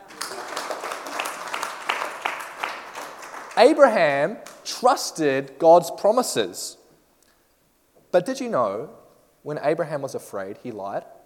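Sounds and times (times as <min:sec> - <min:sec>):
group clapping for a child: 0:00.0 - 0:04.7
speech: 0:03.6 - 0:06.8, 0:08.1 - 0:11.2.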